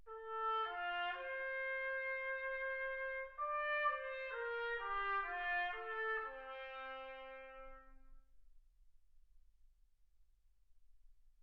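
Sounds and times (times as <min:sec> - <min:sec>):
trumpet: 0:00.1 - 0:08.3.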